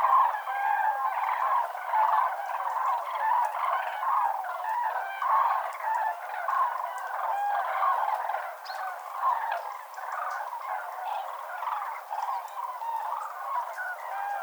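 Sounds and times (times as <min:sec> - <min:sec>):
common cranes calling: 0:00.0 - 0:14.4.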